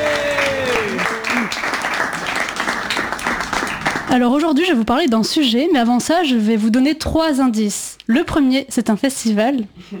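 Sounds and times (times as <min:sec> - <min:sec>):
high whoops from audience: 0:00.0 - 0:01.6
audience clapping for a comedian on stage: 0:00.0 - 0:04.4
speech: 0:04.1 - 0:09.9.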